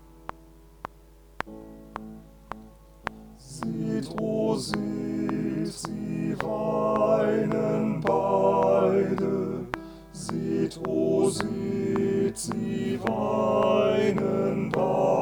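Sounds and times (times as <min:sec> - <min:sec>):
SATB choir with piano: 0:03.4 - 0:15.2.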